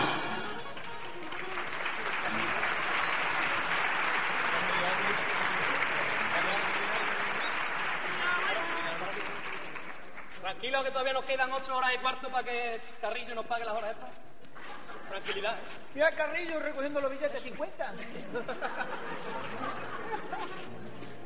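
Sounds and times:
audience applause: 0.0 - 10.4
speech: 10.6 - 14.3, 15.1 - 21.0
laughter: 14.4 - 15.7, 17.9 - 21.0.

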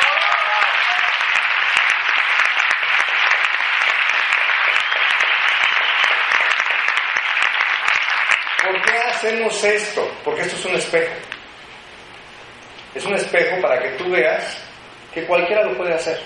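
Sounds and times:
audience applause: 0.0 - 9.7
speech: 8.7 - 11.3, 13.0 - 16.2.

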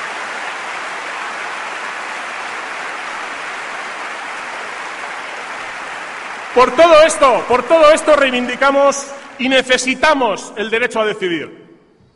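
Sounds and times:
crowd applause: 0.0 - 9.6
speech: 6.6 - 11.6.

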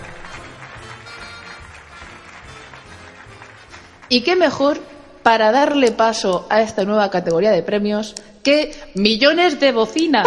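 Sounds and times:
applause: 0.0 - 5.0
speech: 4.1 - 10.2.

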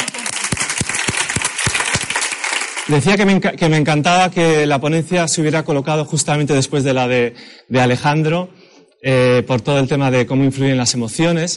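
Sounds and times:
audience applause: 0.0 - 3.1
speech: 2.9 - 11.5.

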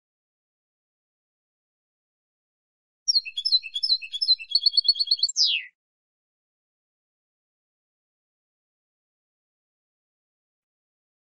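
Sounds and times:
European goldfinch song: 3.1 - 5.8.

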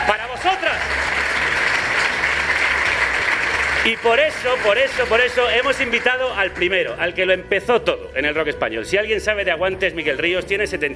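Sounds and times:
audience applause: 0.0 - 6.7
speech: 3.8 - 10.9.

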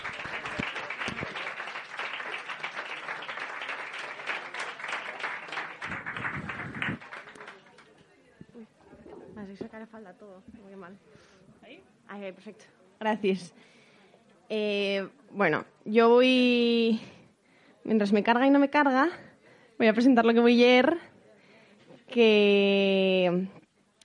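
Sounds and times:
audience applause: 0.0 - 8.0
speech: 10.0 - 11.1, 11.8 - 13.6, 14.5 - 17.1, 17.9 - 20.9, 22.2 - 23.6.

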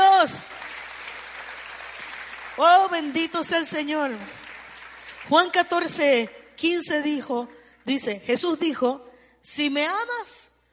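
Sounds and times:
audience applause: 0.3 - 3.2, 4.2 - 5.3
speech: 2.6 - 4.5, 5.2 - 10.5.

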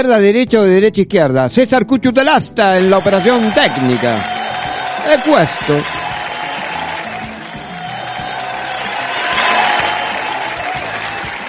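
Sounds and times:
speech: 0.0 - 4.3, 5.0 - 6.0
furious applause: 2.8 - 11.4.

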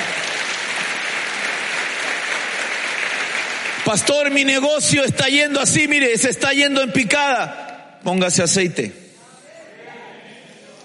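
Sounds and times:
audience clapping: 0.0 - 4.9
speech: 3.8 - 9.0.

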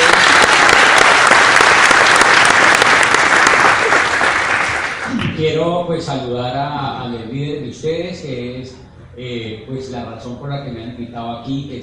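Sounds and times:
audience applause: 0.0 - 5.2
speech: 5.4 - 11.8.

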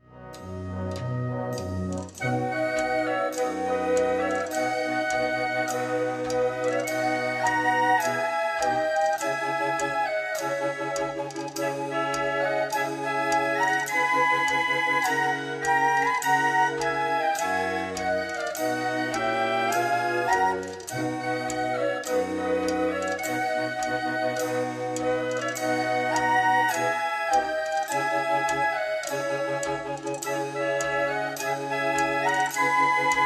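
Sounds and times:
ceramic ocarina playing in a band march: 0.0 - 33.2.

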